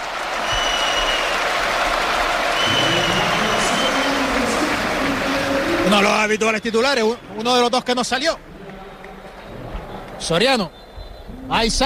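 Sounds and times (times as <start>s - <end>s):
stadium crowd ovation: 0.0s - 11.8s
whistles: 0.3s - 1.6s, 2.5s - 4.4s, 5.9s - 7.7s, 10.6s - 11.4s
speech: 5.9s - 8.5s, 10.2s - 10.8s, 11.5s - 11.8s.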